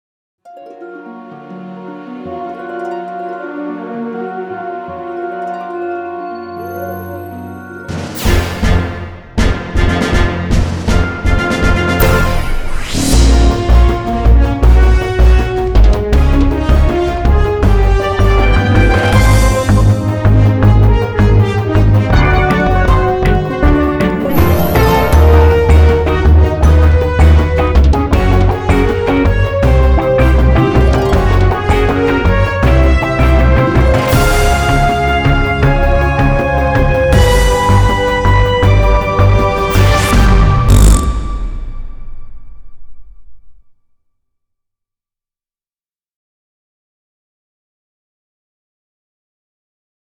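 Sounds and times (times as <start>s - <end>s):
live horns playing: 0.8s - 41.6s.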